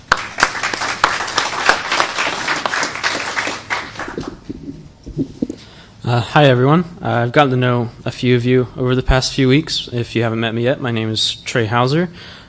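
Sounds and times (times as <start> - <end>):
church congregation applauding to welcome a speaker: 0.0 - 4.8
speech: 6.1 - 12.4.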